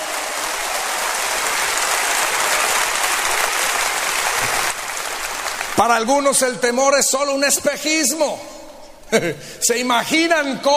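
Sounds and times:
audience applause: 0.0 - 6.5
speech: 5.8 - 10.7.

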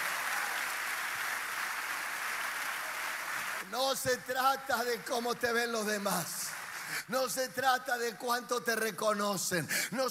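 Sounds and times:
audience applause: 0.0 - 4.0, 4.6 - 7.4
speech: 3.6 - 10.1.

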